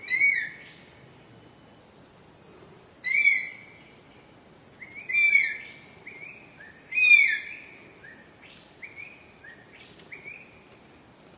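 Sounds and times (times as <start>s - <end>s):
Philippine eagle giving high downward-sliding whistled calls: 0.0s - 0.8s, 3.0s - 3.8s, 4.8s - 10.6s.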